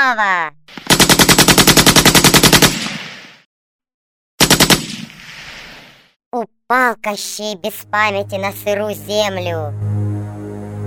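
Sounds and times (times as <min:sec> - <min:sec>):
speech: 0:00.1 - 0:00.8, 0:06.3 - 0:10.0
revolver gunshots: 0:00.7 - 0:03.5, 0:04.4 - 0:06.0.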